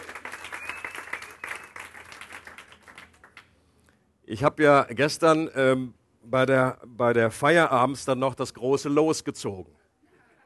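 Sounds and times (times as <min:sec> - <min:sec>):
small group applause: 0:00.0 - 0:03.6
faint whistle-like tone: 0:00.3 - 0:01.8
speech: 0:04.3 - 0:09.8.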